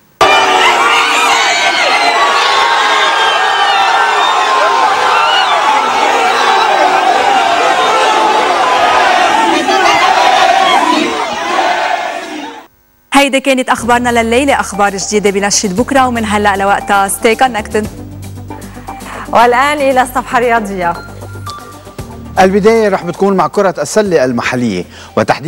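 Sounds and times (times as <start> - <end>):
hundreds of fans cheering and chanting outside Messi's hotel: 0.2 - 12.7
speech: 13.2 - 18.0, 19.3 - 21.1, 22.4 - 25.4.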